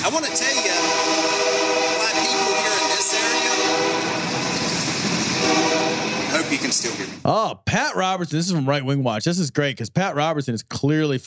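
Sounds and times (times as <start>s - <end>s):
train passing on King Street South Carolina: 0.0s - 7.3s
speech: 0.1s - 0.6s, 7.2s - 11.2s.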